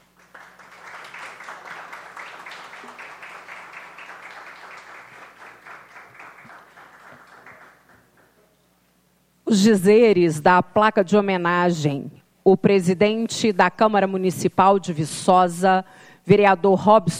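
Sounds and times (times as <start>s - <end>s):
crowd applauding: 0.0s - 8.4s
speech: 9.5s - 17.1s.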